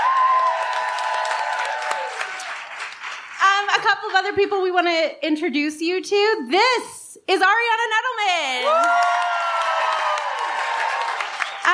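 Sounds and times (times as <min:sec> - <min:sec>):
audience applause: 0:00.0 - 0:03.4, 0:08.7 - 0:11.7
speech: 0:03.8 - 0:09.1.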